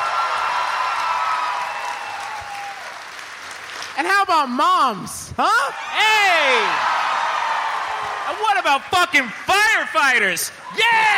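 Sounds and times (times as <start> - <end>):
audience applause and cheering: 0.0 - 4.0, 5.8 - 9.7
speech: 4.0 - 7.0, 8.3 - 11.1.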